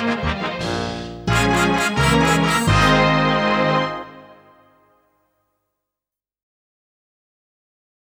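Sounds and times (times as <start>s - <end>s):
comedy music intro: 0.0s - 4.2s.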